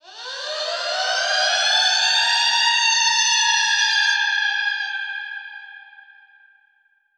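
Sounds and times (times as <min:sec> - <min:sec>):
alarm siren samples with echo processing: 0:00.0 - 0:04.8.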